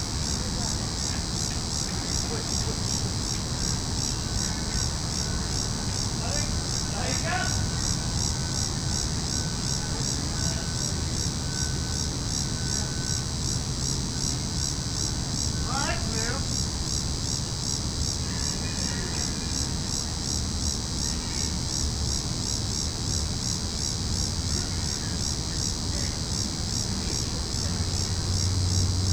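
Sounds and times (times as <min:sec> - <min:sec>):
several cicadas calling in a tree: 0:00.0 - 0:29.1.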